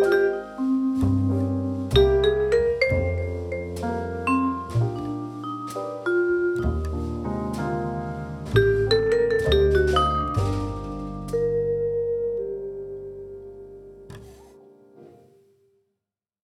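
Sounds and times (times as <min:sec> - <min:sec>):
vibraphone: 0:00.0 - 0:07.7, 0:08.5 - 0:13.2.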